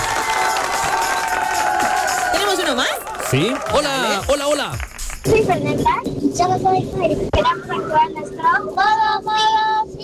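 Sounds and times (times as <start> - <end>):
cheers: 0.0 - 4.5
crowd applauding: 0.0 - 5.3
speech: 2.7 - 10.0.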